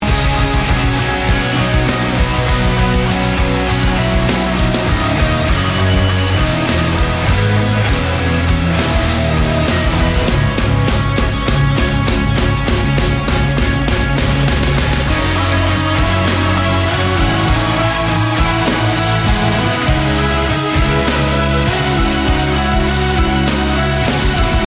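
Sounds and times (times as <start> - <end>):
instrumental music: 0.0 - 24.6.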